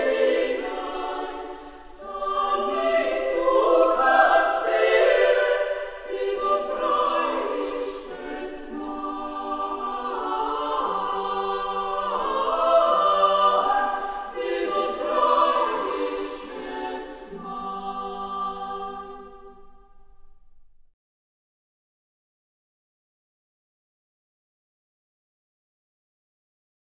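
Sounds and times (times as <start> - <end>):
three- or four-part women's choir singing a folk song: 0.0 - 20.0.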